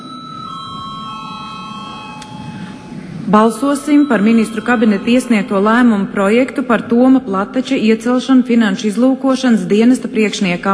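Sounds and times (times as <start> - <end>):
parliament chamber bell signalling a vote: 0.0 - 6.9
speech: 3.3 - 10.7.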